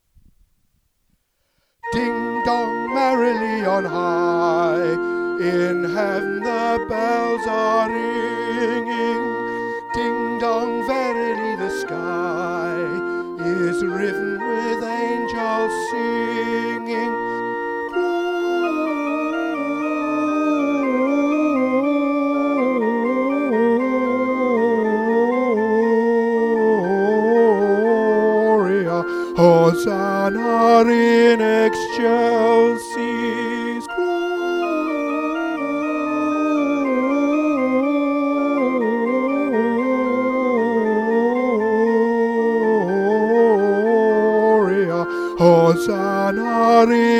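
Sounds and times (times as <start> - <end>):
soprano singing: 1.8 - 47.1.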